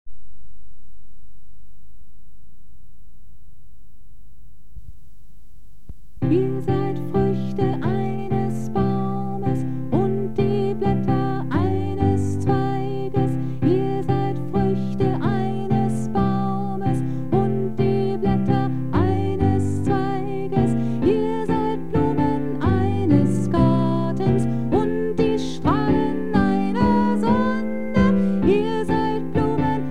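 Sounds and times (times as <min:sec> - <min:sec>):
soprano in choral music: 0:06.2 - 0:29.8.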